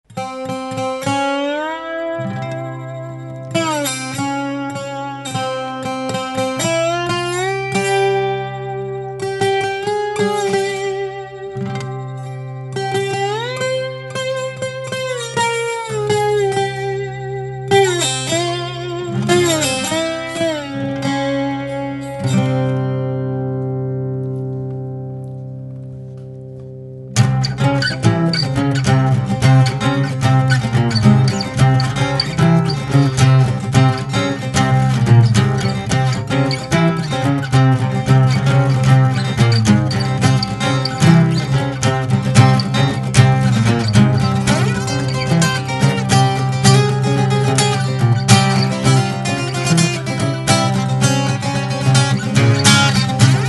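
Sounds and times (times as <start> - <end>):
Arabic blues music: 0.1 - 53.4.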